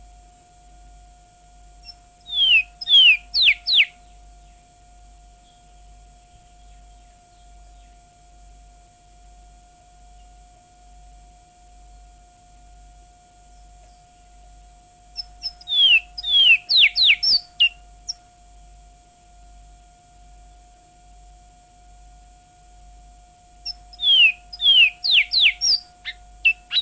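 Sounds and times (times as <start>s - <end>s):
Surinamese twa-twa songbird singing: 1.8s - 8.2s, 10.0s - 10.4s, 13.5s - 18.3s, 23.6s - 26.7s.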